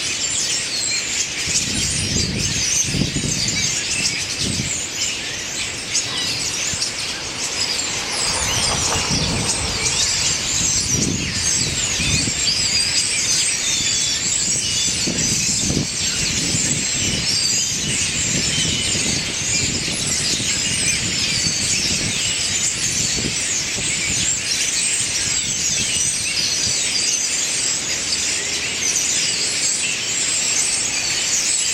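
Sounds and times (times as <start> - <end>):
blackbirds singing: 0.0 - 31.7.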